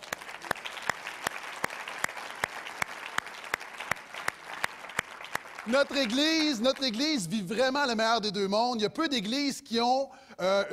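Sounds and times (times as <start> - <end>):
audience applauding: 0.0 - 7.5
speech: 5.7 - 10.7.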